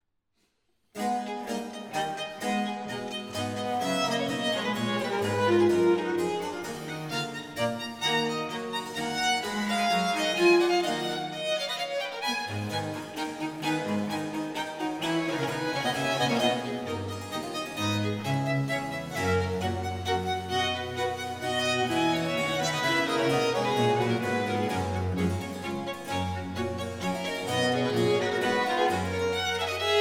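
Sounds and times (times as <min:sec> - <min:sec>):
classical sonata in A minor, allegro: 0:01.0 - 0:29.9.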